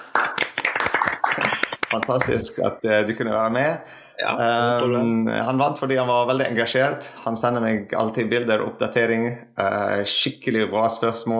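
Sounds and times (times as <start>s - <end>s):
applause: 0.0s - 2.4s
speech: 1.4s - 11.3s.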